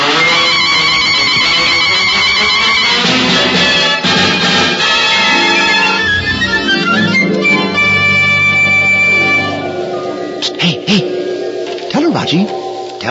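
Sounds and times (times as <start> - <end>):
medley of musical sound effects: 0.0 - 13.0.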